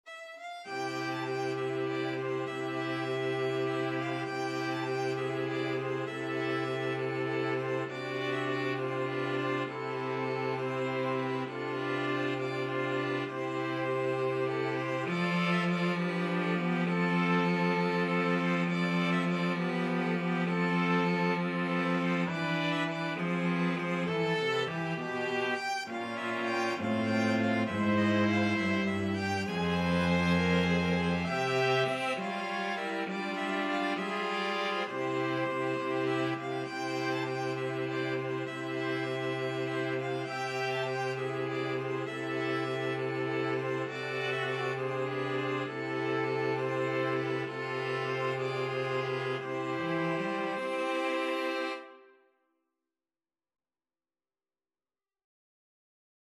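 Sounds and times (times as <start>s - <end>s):
flexible mixed ensemble of 4 players: 0.4s - 51.5s.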